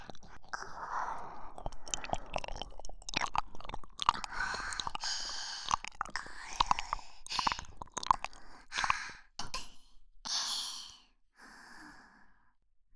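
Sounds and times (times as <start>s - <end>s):
licking both ears: 0.0s - 9.6s.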